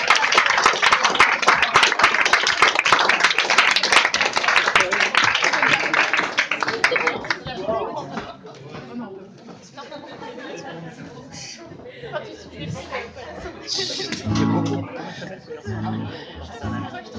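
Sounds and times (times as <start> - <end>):
audience applause: 0.0 - 7.5
laughter: 5.6 - 8.9, 9.6 - 17.1.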